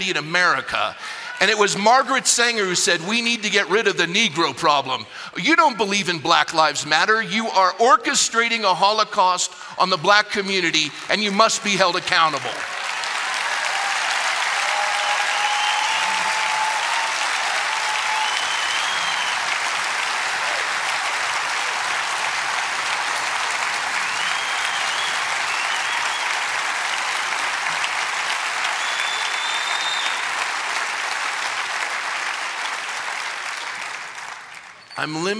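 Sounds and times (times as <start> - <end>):
speech: 0.0 - 12.8, 35.0 - 35.3
large audience applause: 10.8 - 35.3
faint scattered whistles and cheers: 13.2 - 19.8, 23.9 - 26.7, 28.6 - 30.5.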